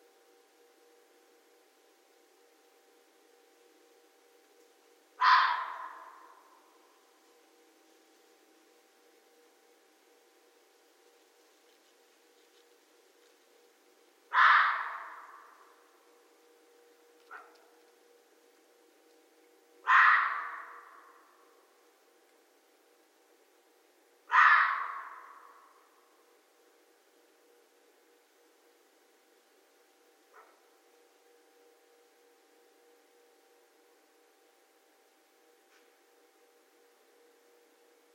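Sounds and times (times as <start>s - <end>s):
red fox hoarse bark-scream: 5.2s - 6.6s, 14.3s - 15.8s, 19.8s - 21.4s, 24.2s - 25.9s.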